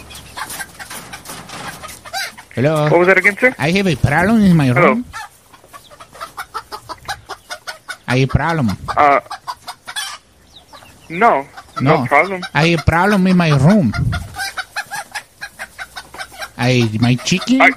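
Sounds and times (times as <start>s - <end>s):
chicken clucking: 0.0s - 17.7s
speech: 2.6s - 5.2s, 8.1s - 9.4s, 11.1s - 14.2s, 16.6s - 17.7s.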